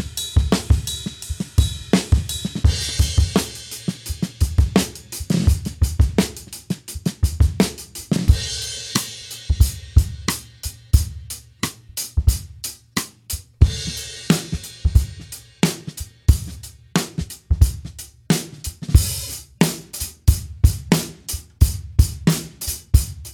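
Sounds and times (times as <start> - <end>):
crisp drum beats: 0.0 - 23.3.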